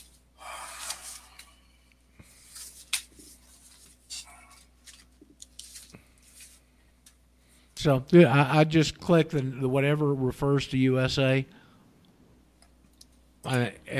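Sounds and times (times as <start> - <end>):
paper form rustling and crinkling: 2.3 - 6.7
speech: 7.8 - 11.6, 13.5 - 13.9.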